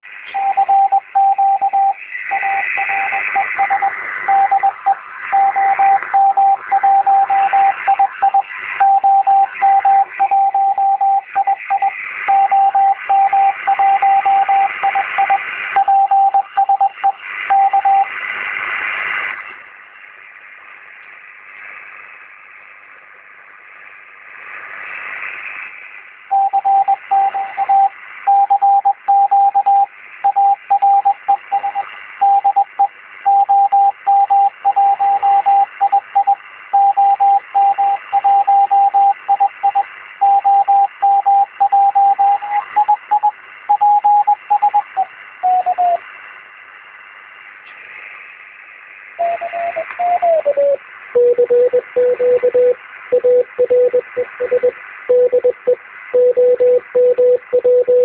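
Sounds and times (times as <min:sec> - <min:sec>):
5 MHz CQ telegraphy: 0:00.3 - 0:18.1, 0:26.3 - 0:46.0, 0:49.2 - 0:58.0.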